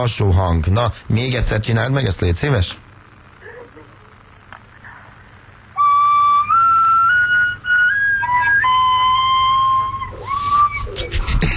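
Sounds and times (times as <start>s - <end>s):
speech: 0.0s - 2.8s
faint noise: 0.0s - 11.5s
laughter: 3.4s - 4.1s, 10.2s - 11.5s
soprano recorder playing held clear notes: 5.8s - 11.0s.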